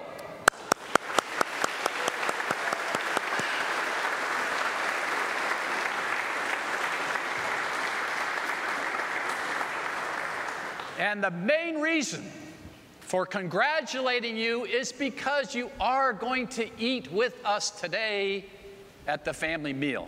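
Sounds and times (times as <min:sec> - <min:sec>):
audience clapping: 0:00.4 - 0:11.0
speech: 0:11.0 - 0:12.4, 0:13.1 - 0:20.0.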